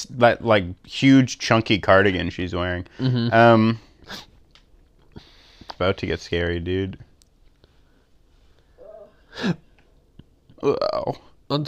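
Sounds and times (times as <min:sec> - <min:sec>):
speech: 0:00.0 - 0:04.3, 0:05.8 - 0:07.1, 0:09.4 - 0:09.6, 0:10.6 - 0:11.6
hiccup: 0:08.8 - 0:09.1.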